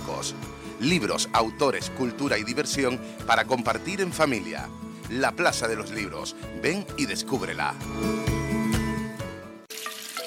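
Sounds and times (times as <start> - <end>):
speech: 0.2 - 8.4
water running from a tap: 9.7 - 10.2.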